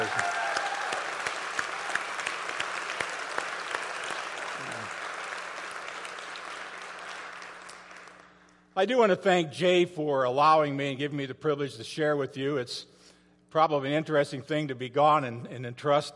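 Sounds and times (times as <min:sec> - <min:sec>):
audience applause: 0:00.0 - 0:08.2
speech: 0:08.8 - 0:12.9, 0:13.5 - 0:16.1.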